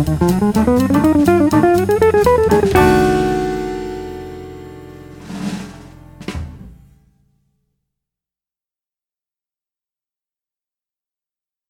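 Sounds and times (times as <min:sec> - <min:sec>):
fast guitar licks: 0:00.0 - 0:06.2.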